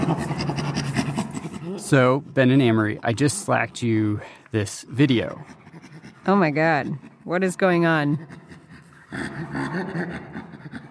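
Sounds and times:
chimpanzee panting laughter: 0.0s - 1.8s, 5.3s - 7.3s, 7.9s - 10.8s
speech: 1.9s - 5.6s, 6.3s - 8.4s, 9.1s - 10.4s.

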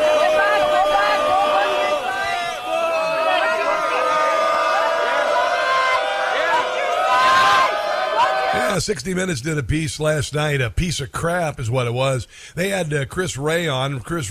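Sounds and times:
protest crowd screaming in New York City: 0.0s - 8.8s
speech: 8.8s - 14.2s.

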